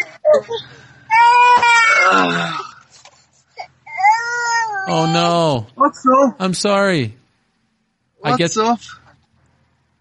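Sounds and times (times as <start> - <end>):
speech: 0.4 - 0.8, 2.0 - 2.6, 4.9 - 7.2, 8.2 - 9.0
baby screaming and crying: 1.1 - 2.7, 3.6 - 5.2.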